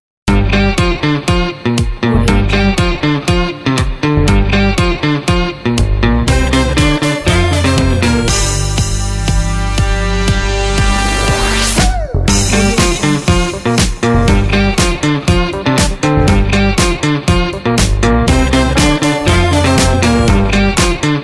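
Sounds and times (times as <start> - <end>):
funk music: 0.3 - 21.2.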